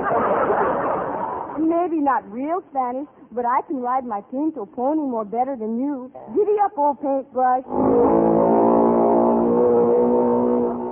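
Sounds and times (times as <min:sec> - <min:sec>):
laughter: 0:00.0 - 0:01.6
speech: 0:01.8 - 0:08.6
outboard motor revving: 0:07.7 - 0:10.9.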